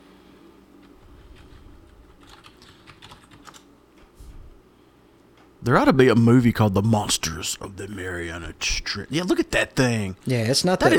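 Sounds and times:
typing on a computer keyboard: 0:02.1 - 0:03.7
speech: 0:05.6 - 0:10.9.

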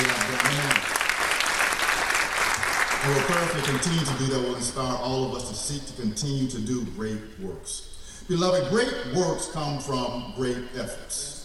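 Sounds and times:
crowd applauding with hand clapping: 0:00.0 - 0:04.5
speech: 0:03.0 - 0:11.4.

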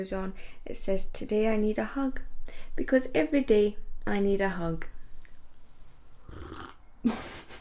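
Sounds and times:
speech: 0:00.0 - 0:05.0, 0:06.3 - 0:07.4
slurping English breakfast tea from a pink mug: 0:06.2 - 0:06.8.

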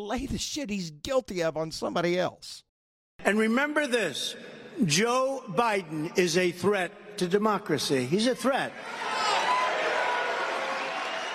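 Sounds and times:
speech: 0:00.0 - 0:09.2
crowd cheering: 0:08.7 - 0:11.3.

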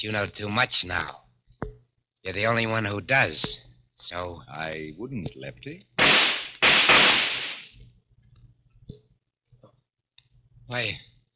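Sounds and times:
speech: 0:00.0 - 0:01.2, 0:02.2 - 0:05.9, 0:10.7 - 0:11.1
gun loaded with blanks firing in a radio drama: 0:06.0 - 0:07.7.

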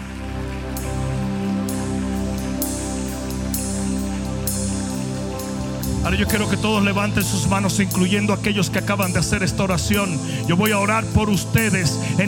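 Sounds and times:
audience applauding: 0:00.0 - 0:11.4
speech: 0:06.1 - 0:12.2.

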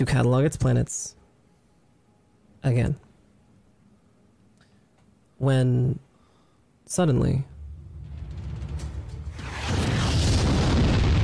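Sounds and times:
speech: 0:00.0 - 0:01.2, 0:02.6 - 0:03.0, 0:05.4 - 0:06.1, 0:06.9 - 0:07.5
low steady hum: 0:00.0 - 0:11.2
explosion rocking the starship USS Lovelace: 0:07.5 - 0:11.2.

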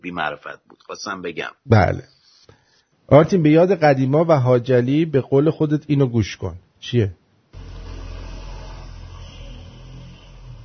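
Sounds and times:
speech: 0:00.0 - 0:02.2, 0:03.1 - 0:07.2
Honda motorcycle engine droning: 0:07.6 - 0:10.6.

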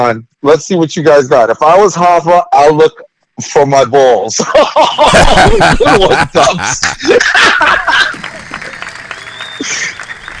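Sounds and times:
speech: 0:00.0 - 0:08.4, 0:09.6 - 0:09.9
chuckling: 0:04.4 - 0:10.3
applause: 0:07.6 - 0:10.3.

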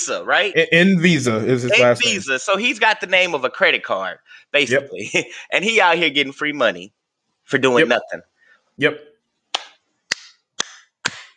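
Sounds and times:
speech: 0:00.0 - 0:09.1
laughter: 0:00.6 - 0:02.8, 0:04.6 - 0:06.4
hand claps: 0:09.6 - 0:11.3.

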